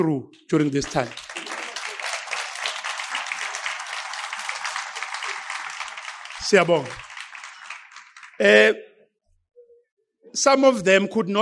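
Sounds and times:
speech: 0.0s - 1.3s, 6.4s - 7.1s, 8.4s - 8.9s, 10.3s - 11.4s
round of applause: 0.5s - 8.7s.

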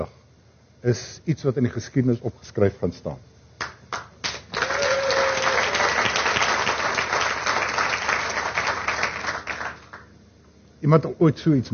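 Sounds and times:
speech: 0.8s - 3.3s, 10.8s - 11.7s
audience applause, people clapping hands: 3.6s - 10.1s.

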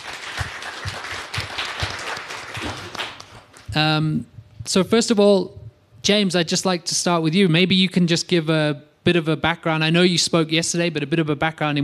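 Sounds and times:
audience applause for two panelists: 0.0s - 3.7s
speech: 3.8s - 11.8s.

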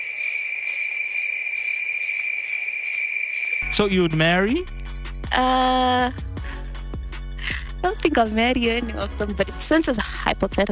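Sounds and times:
cricket chirping sound effect: 0.0s - 5.0s
speech: 3.6s - 6.2s, 7.8s - 10.6s.

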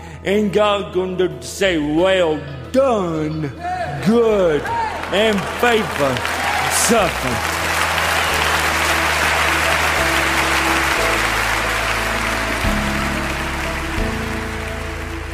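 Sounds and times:
speech: 0.2s - 7.6s
large crowd applauding: 4.2s - 15.3s.

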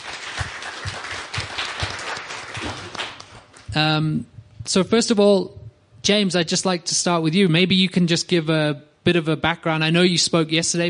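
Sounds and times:
audience applause: 0.0s - 3.7s
speech: 3.8s - 10.8s.

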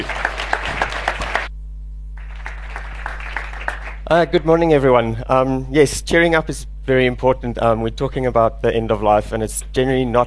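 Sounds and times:
audience clapping hands: 0.0s - 1.5s, 2.2s - 4.2s
speech: 4.1s - 10.2s.

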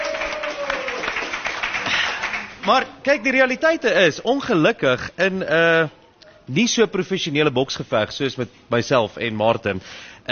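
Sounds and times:
applause at a boxing weigh-in: 0.0s - 3.3s
speech: 2.7s - 10.3s.

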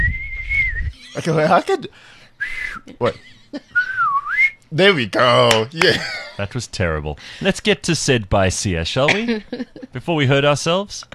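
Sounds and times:
presenters whistling, trying to copy an excited crowd whistle: 0.0s - 1.0s, 2.4s - 2.8s, 3.8s - 4.6s
speech: 1.2s - 3.8s, 4.7s - 11.1s.

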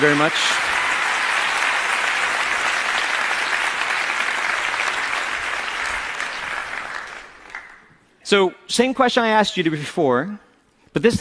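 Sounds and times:
speech: 0.0s - 0.6s, 8.3s - 11.1s
crowd applauding: 0.0s - 7.9s.

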